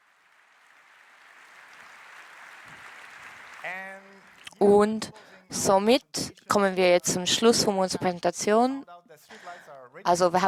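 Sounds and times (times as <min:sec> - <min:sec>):
audience applause: 0:00.0 - 0:04.5
speech: 0:03.6 - 0:09.4, 0:10.0 - 0:10.4.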